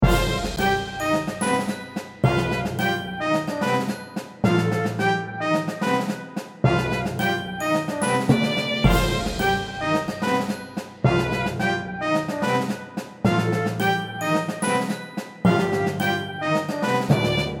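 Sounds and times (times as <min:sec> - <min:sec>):
orchestral music: 0:00.0 - 0:17.5.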